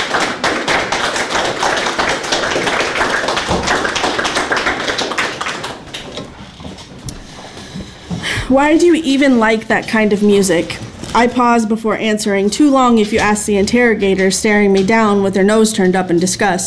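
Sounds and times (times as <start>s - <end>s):
audience clapping: 0.0s - 8.1s
speech: 8.5s - 16.6s.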